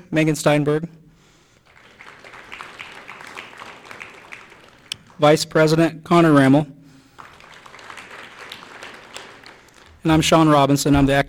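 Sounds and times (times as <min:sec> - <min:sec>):
speech: 0:00.1 - 0:01.0, 0:05.2 - 0:06.8, 0:10.0 - 0:11.2
crowd applauding: 0:01.6 - 0:05.8, 0:07.0 - 0:11.2.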